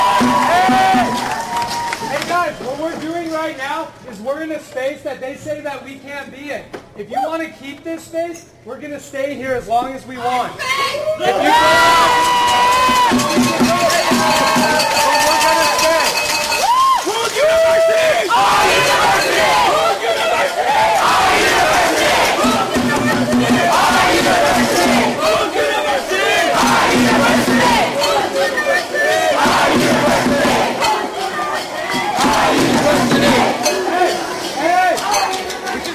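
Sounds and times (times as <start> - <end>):
protest crowd yelling and cheering: 0.0 - 3.0, 10.6 - 35.9
speech: 3.5 - 16.0
overlapping shouted protest voices chanting: 11.2 - 35.9.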